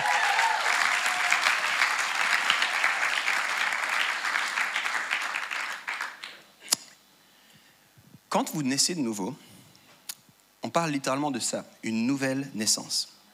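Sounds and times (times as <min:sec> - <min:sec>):
audience applause: 0:00.0 - 0:06.4
speech: 0:08.4 - 0:09.5, 0:10.8 - 0:13.2.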